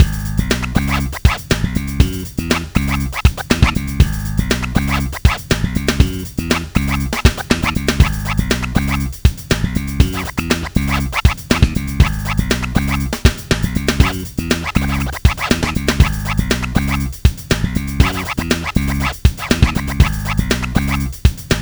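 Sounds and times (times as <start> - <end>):
scratching: 0.0 - 21.6.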